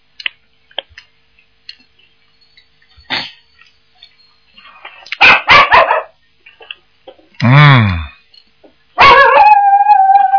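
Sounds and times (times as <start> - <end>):
small dog barking and howling: 5.2 - 6.2, 9.0 - 10.3.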